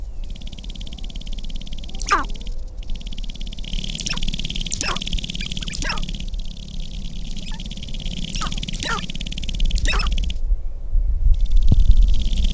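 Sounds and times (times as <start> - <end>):
sharp-tailed grouse display rattling buzz: 0.0 - 10.5, 11.3 - 12.5.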